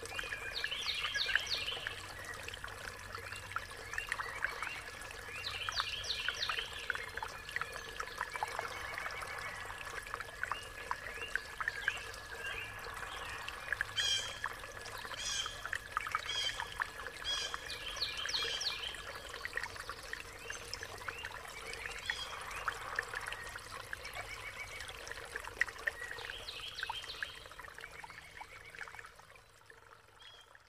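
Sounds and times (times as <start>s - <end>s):
stream flowing in nature: 0.0s - 30.6s
birds singing in nature: 0.1s - 9.8s, 10.4s - 25.1s.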